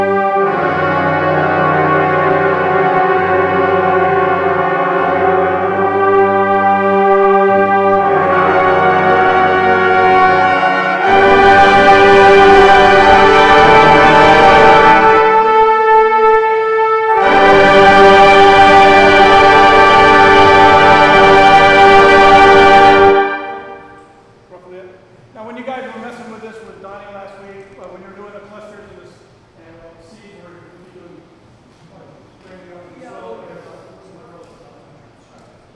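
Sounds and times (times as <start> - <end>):
brass warm-up run: 0.0 - 24.2.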